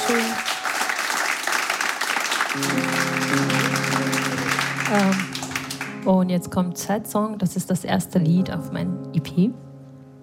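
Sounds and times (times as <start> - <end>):
crowd applauding: 0.0 - 6.1
speech: 2.6 - 2.9, 4.9 - 5.3, 6.0 - 9.6.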